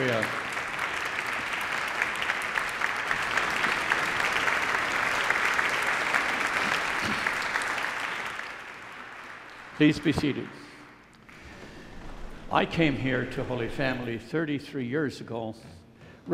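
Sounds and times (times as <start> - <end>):
audience applause: 0.0 - 11.6
speech: 9.8 - 10.6, 12.5 - 16.3.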